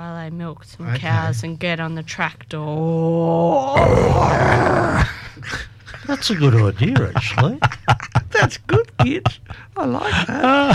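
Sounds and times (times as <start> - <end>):
speech: 0.3 - 10.7
heavy metal vocal scream: 3.6 - 5.2
laughter: 5.1 - 10.7.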